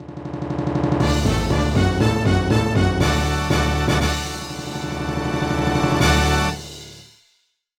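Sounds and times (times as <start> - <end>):
dance finish musical flourish: 1.0 - 7.0.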